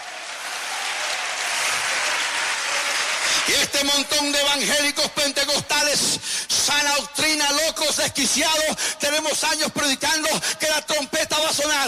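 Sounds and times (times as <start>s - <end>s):
audience applauding loudly: 0.0s - 4.8s
speech: 3.5s - 11.8s.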